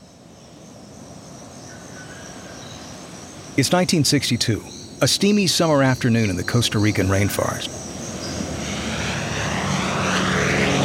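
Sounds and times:
speech: 3.6 - 7.8
Douglas B-26 bomber flying low overhead over jungle treetops: 7.9 - 10.8.

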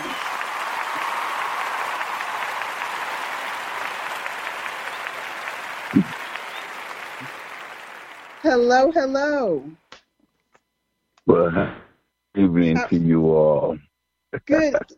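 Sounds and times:
audience applause welcoming a band: 0.0 - 8.9
speech: 5.9 - 6.2, 8.4 - 9.8, 11.3 - 11.8, 12.4 - 14.9.

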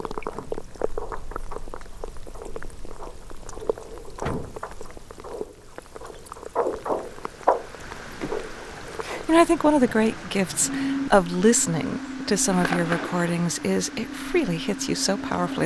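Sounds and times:
brash ice percolating among icebergs: 0.0 - 10.5
speech: 9.4 - 15.6.

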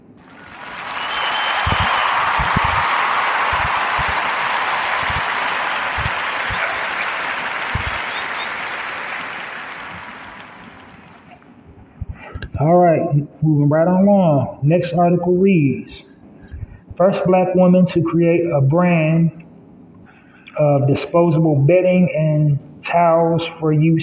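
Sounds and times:
applause: 0.0 - 11.4
speech: 13.4 - 16.0, 17.0 - 19.4, 20.6 - 24.0.

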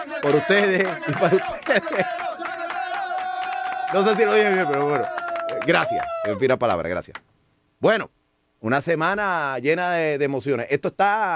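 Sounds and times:
sustained droning chorus of voices: 0.0 - 5.5
crowd cheering and shouting: 0.0 - 6.4
steady rhythmic clapping: 0.0 - 7.3
speech: 0.1 - 2.4, 3.9 - 7.2, 7.8 - 11.3
laughter: 0.2 - 3.0.

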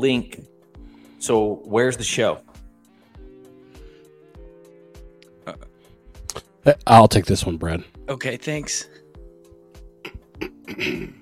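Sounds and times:
speech: 0.0 - 0.5, 1.2 - 2.5, 5.5 - 5.7, 6.6 - 9.0, 10.4 - 11.1
throat clearing: 10.0 - 11.1.

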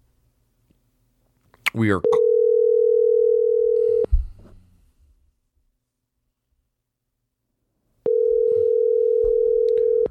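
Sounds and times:
speech: 1.8 - 2.2
telephone ringing tone during outgoing call: 2.0 - 4.1, 8.1 - 10.0.

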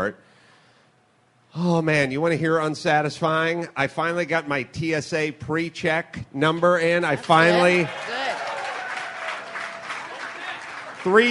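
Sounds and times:
speech: 0.0 - 0.3, 1.5 - 8.2, 11.0 - 11.2
audience applause: 7.2 - 11.2.

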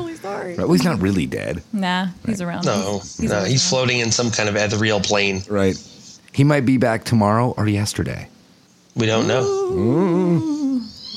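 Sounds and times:
speech: 0.4 - 8.3, 9.0 - 10.7
cat squealing: 9.2 - 11.1.

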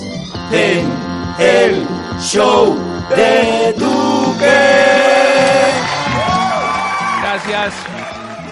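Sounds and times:
speech: 0.5 - 4.6, 7.4 - 8.2
studio audience applause and cheering: 4.4 - 8.5.

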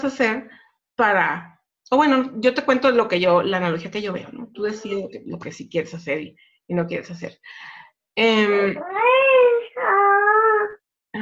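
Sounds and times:
speech: 0.0 - 9.6
baby crying: 8.5 - 10.8.

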